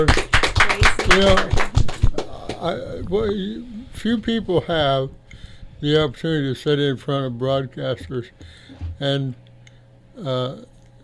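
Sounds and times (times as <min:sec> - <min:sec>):
speech: 0:00.0 - 0:00.2, 0:01.1 - 0:01.6, 0:02.6 - 0:05.2, 0:05.8 - 0:09.4, 0:10.2 - 0:10.7
audience applause: 0:00.0 - 0:02.6.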